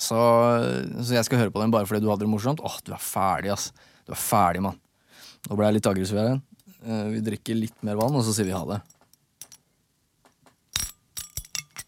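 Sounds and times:
speech: 0:00.1 - 0:04.8, 0:05.4 - 0:09.0
glass bottle clinking: 0:10.8 - 0:11.8.

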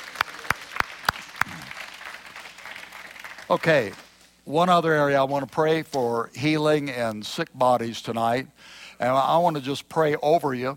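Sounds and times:
audience clapping in rhythm: 0:00.0 - 0:04.2
speech: 0:03.5 - 0:10.7.

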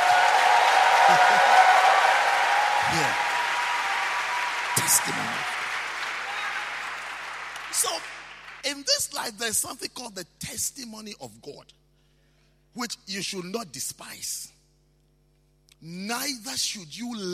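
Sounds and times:
audience clapping: 0:00.0 - 0:08.8
speech: 0:02.9 - 0:03.2, 0:04.8 - 0:05.5, 0:07.8 - 0:11.8, 0:12.7 - 0:14.6, 0:15.8 - 0:17.3.

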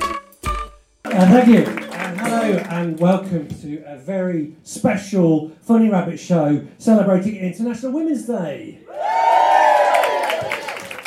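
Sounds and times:
speech: 0:01.2 - 0:09.4
women cheering: 0:08.9 - 0:11.0.

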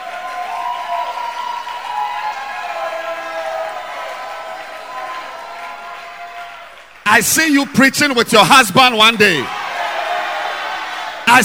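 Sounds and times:
faint voices and cheers: 0:00.0 - 0:08.4, 0:09.1 - 0:11.4
audience clapping hands: 0:00.0 - 0:11.4
speech: 0:07.2 - 0:09.6.

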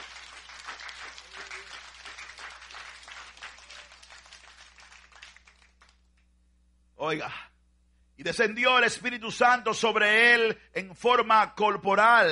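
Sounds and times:
crowd applauding: 0:00.0 - 0:06.2
speech: 0:07.0 - 0:07.5, 0:08.2 - 0:12.3.

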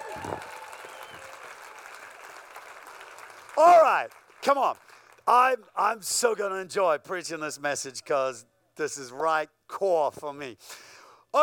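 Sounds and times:
audience clapping: 0:00.0 - 0:05.8
speech: 0:03.6 - 0:11.4.

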